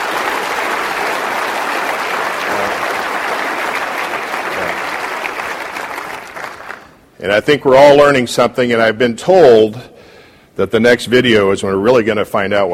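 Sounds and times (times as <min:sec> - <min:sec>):
audience applause: 0:00.0 - 0:07.0
speech: 0:07.2 - 0:09.9, 0:10.6 - 0:12.7.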